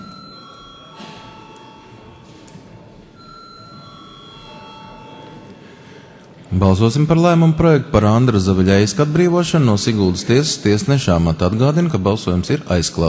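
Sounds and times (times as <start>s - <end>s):
continuous electric bell ringing to call a vote: 0.0s - 2.4s, 3.2s - 5.8s
speech: 6.5s - 13.0s.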